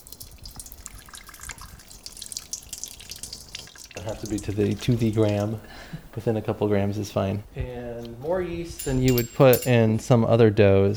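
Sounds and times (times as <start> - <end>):
water poured into a bowl: 0.0 - 6.2
speech: 4.0 - 10.9.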